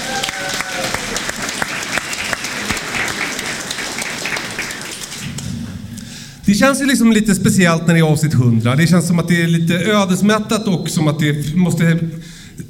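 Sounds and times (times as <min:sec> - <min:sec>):
audience applause: 0:00.0 - 0:05.8
speech: 0:06.6 - 0:12.6.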